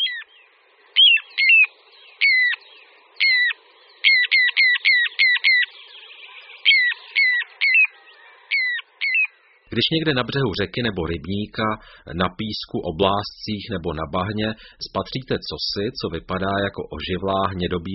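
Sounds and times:
little ringed plover down-slurred whistled calls: 0:00.0 - 0:00.4, 0:01.0 - 0:09.4
speech: 0:09.8 - 0:17.9.

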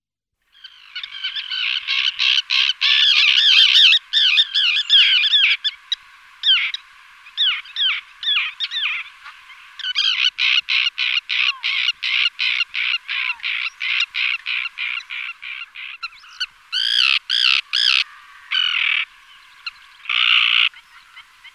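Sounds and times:
common tern harsh rasping calls and clipped kik notes: 0:00.5 - 0:21.5.

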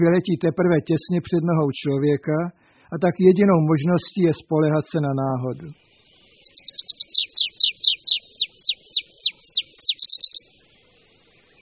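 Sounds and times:
speech: 0:00.0 - 0:05.8
tree pipit song: 0:06.4 - 0:10.6.

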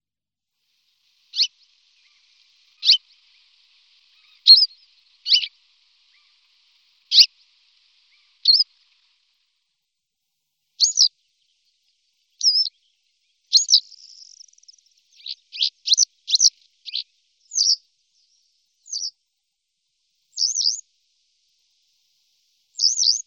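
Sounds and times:
Western yellow wagtail buzzy calls: 0:00.9 - 0:09.4, 0:10.8 - 0:11.2, 0:12.3 - 0:19.2, 0:20.3 - 0:20.8, 0:22.7 - 0:23.2.

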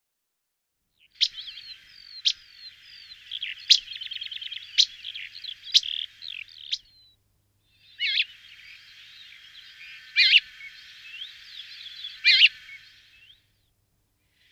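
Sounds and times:
rock sparrow calls: 0:01.0 - 0:07.1, 0:07.7 - 0:13.4.

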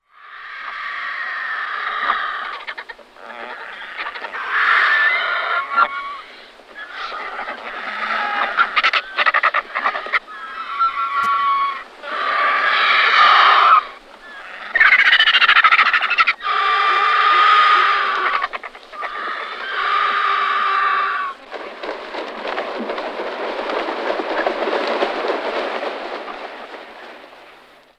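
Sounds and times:
Griffon vulture hoarse grating calls: 0:00.2 - 0:21.5
hissing rustling noise: 0:00.2 - 0:27.9.

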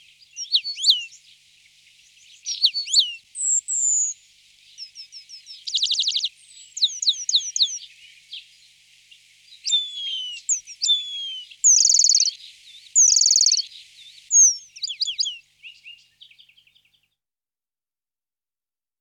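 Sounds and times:
Eurasian penduline tit Remiz pendulinus calling: 0:00.3 - 0:01.2, 0:02.3 - 0:04.2, 0:04.8 - 0:07.9, 0:09.6 - 0:16.6.

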